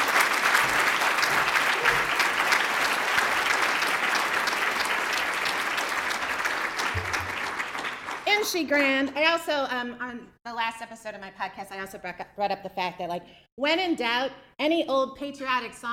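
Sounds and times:
audience applause: 0.0s - 8.6s
speech: 8.5s - 15.9s.

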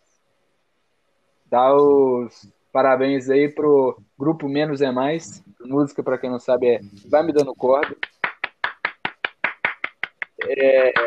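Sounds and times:
speech: 1.5s - 8.1s, 10.5s - 11.0s
person clapping: 7.3s - 11.0s.

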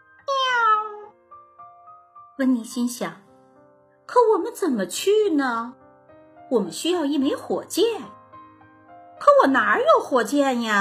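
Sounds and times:
cat meowing: 0.2s - 1.2s
speech: 2.4s - 3.2s, 4.1s - 5.8s, 6.5s - 8.2s, 9.2s - 10.7s.

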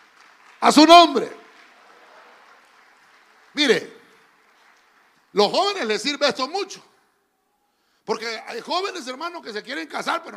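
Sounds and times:
crowd clapping: 0.0s - 6.8s
speech: 0.6s - 1.4s, 3.6s - 3.9s, 5.4s - 6.9s, 8.1s - 10.3s.

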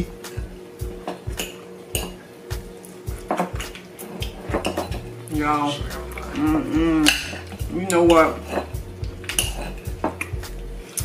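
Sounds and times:
dishes and cutlery clinking as lobster and egg are served: 0.8s - 10.4s
speech: 5.4s - 8.7s.

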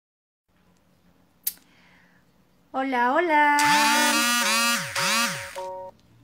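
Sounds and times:
speech: 2.8s - 4.2s
phone message notification chimes: 5.0s - 5.9s.

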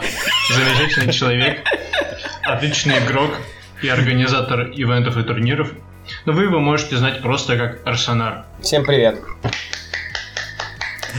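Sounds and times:
laughter: 0.0s - 4.5s, 9.5s - 11.1s
speech: 0.5s - 1.8s, 2.4s - 9.8s
clapping: 9.5s - 11.1s.

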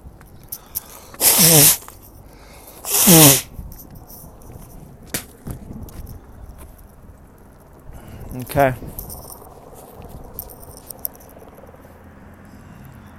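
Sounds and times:
person blowing nose: 1.2s - 1.9s, 2.8s - 3.5s
speech: 1.4s - 1.9s, 8.6s - 9.0s.

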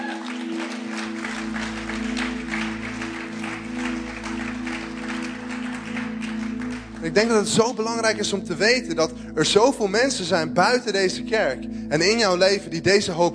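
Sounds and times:
audience applause: 0.0s - 7.6s
speech: 7.0s - 13.3s.

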